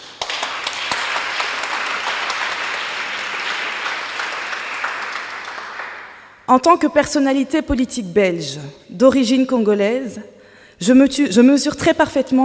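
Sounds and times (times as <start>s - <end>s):
audience applause: 0.0s - 6.4s
speech: 6.5s - 12.4s.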